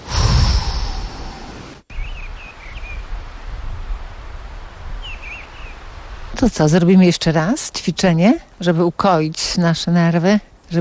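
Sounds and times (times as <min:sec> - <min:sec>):
loud exhale through the mouth during a breathing exercise: 0:00.0 - 0:01.7
speech: 0:06.4 - 0:10.8.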